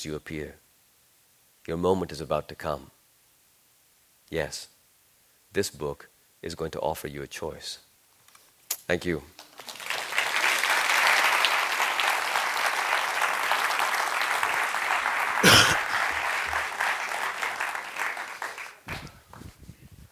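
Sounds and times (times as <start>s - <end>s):
speech: 0.0s - 0.6s, 1.6s - 3.0s, 4.3s - 4.7s, 5.5s - 7.9s, 8.8s - 9.4s
audience applause: 9.4s - 19.4s.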